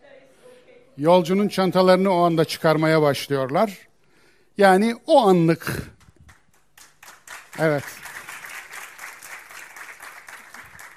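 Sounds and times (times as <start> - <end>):
speech: 1.0 - 3.9, 4.6 - 6.0, 7.6 - 8.0
group applauding: 5.8 - 10.9.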